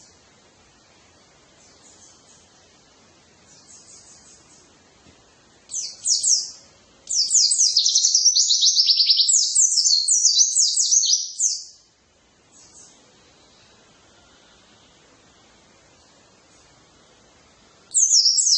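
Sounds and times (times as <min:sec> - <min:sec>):
white-eye twittering song with rapid chatter: 0:01.5 - 0:02.8, 0:03.4 - 0:04.8, 0:05.7 - 0:15.0, 0:17.8 - 0:18.5.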